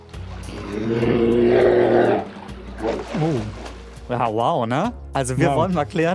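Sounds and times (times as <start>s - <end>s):
speech: 0.5s - 1.3s, 4.1s - 6.1s
brown bear roaring: 0.5s - 3.5s.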